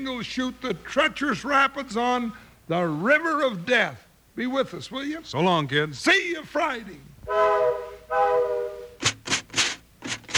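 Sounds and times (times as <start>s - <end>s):
speech: 0.0s - 8.7s
steam train whistle: 7.2s - 9.2s
steam train breathy chugs: 7.2s - 10.3s.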